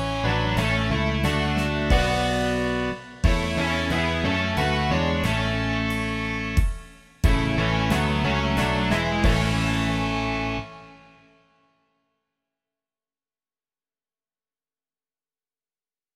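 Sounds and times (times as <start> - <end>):
rock music: 0.0 - 11.2.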